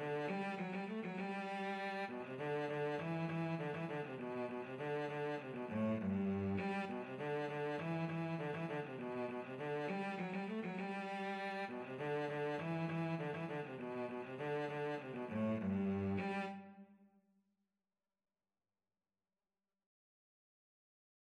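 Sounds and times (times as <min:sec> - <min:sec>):
cello playing a folk tune: 0:00.0 - 0:16.8.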